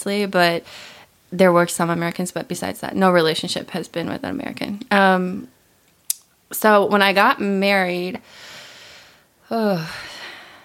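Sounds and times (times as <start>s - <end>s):
speech: 0.0s - 5.6s, 6.5s - 8.5s, 9.5s - 10.1s
deep breath taken mid-conversation: 8.2s - 10.6s.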